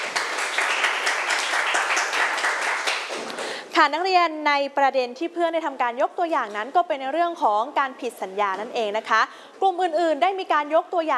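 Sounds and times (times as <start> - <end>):
group of students applauding: 0.0 - 3.6
speech: 3.8 - 11.1.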